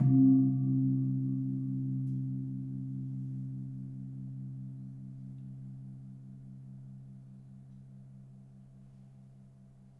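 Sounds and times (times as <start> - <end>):
kempul gong of a gamelan: 0.0 - 7.0.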